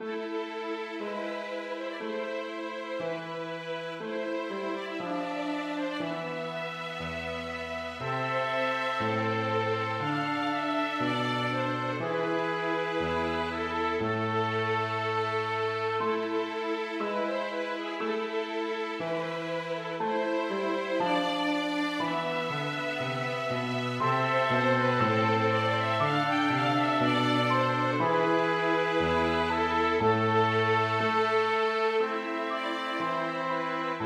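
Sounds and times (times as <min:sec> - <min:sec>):
piano: 0:00.0 - 0:34.0
two violins: 0:00.0 - 0:34.0
trumpet: 0:07.2 - 0:17.8, 0:21.0 - 0:34.0.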